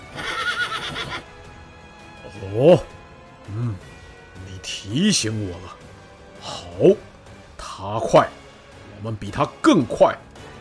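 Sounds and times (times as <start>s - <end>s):
horse neighing: 0.0s - 1.3s
speech: 2.4s - 7.1s, 7.8s - 8.4s, 9.0s - 10.3s.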